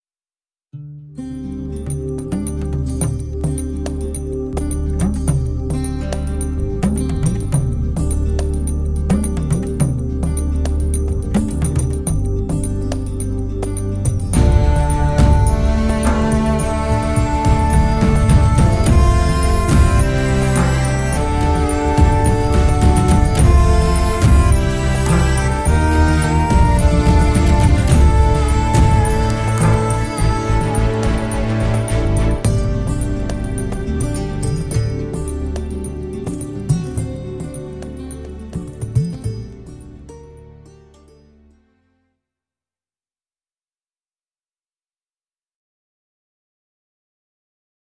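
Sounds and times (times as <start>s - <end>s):
instrumental music: 0.7s - 42.0s.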